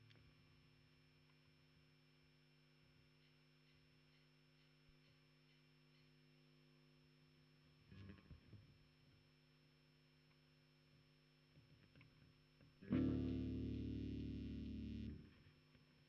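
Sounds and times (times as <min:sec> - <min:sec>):
bass guitar recorded by direct input: 0:12.8 - 0:15.4.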